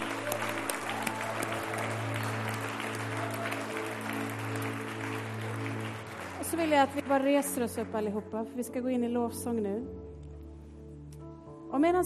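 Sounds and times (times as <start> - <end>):
audience applause: 0.0 - 7.9
speech: 6.6 - 10.0, 11.7 - 12.0.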